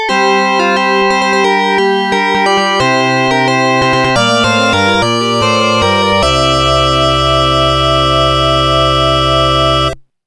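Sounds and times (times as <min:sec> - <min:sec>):
fanfare: 0:00.1 - 0:10.0.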